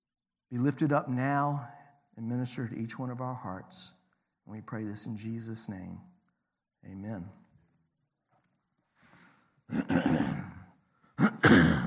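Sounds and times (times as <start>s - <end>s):
speech: 0.5s - 6.1s, 6.8s - 7.4s, 9.7s - 10.5s
person coughing: 9.7s - 11.8s.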